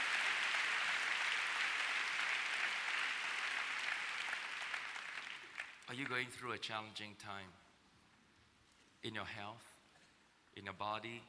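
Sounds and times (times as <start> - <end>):
crowd clapping: 0.0 - 6.3
speech: 5.9 - 7.6, 9.0 - 9.7, 10.6 - 11.2.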